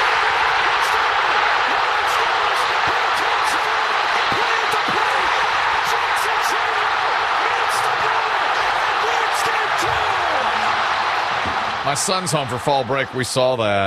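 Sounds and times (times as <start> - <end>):
stadium crowd roaring after a walk-off hit: 0.0 - 13.8
speech: 11.9 - 13.8.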